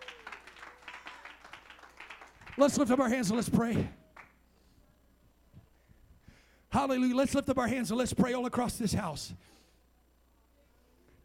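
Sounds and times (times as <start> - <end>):
audience clapping hands: 0.0 - 3.4, 4.1 - 4.4
speech: 2.6 - 4.0, 6.8 - 9.6.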